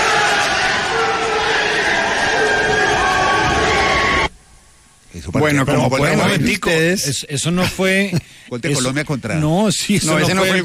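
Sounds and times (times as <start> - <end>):
senators cheering and shouting in celebration: 0.0 - 4.3
speech: 5.4 - 10.6.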